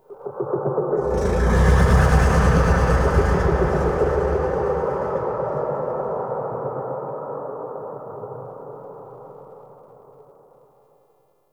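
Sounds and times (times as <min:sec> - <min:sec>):
creature moaning: 0:01.0 - 0:06.3.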